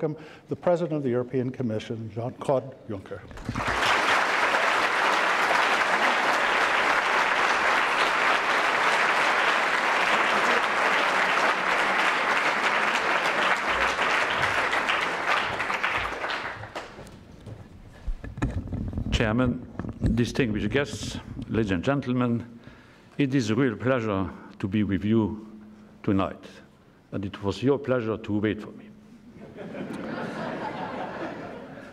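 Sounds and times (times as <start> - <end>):
speech: 0.0 - 3.8, 19.2 - 22.6, 23.2 - 28.8
audience applause: 3.3 - 17.1
laughter: 9.9 - 14.6, 29.3 - 31.9.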